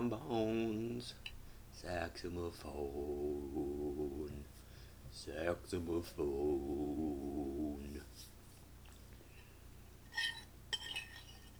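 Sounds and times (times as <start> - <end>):
speech: 0.0 - 8.3
quiet low hum: 2.3 - 4.5, 5.2 - 8.1
silver spoon clinking on stoneware: 10.1 - 11.5.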